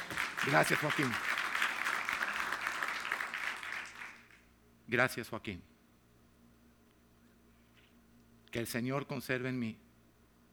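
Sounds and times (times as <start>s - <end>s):
audience applause: 0.0s - 4.4s
speech: 0.4s - 1.3s, 4.9s - 5.7s, 8.5s - 9.8s.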